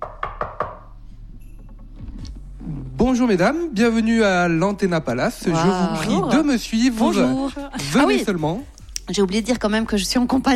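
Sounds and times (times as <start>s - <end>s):
knocks on a hotel door: 0.0s - 0.9s
speech: 3.0s - 10.5s.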